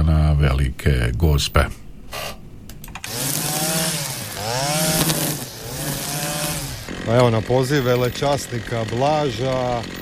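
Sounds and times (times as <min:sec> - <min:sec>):
speech: 0:00.4 - 0:02.4, 0:07.1 - 0:09.9
lawn mowers running: 0:03.0 - 0:09.9.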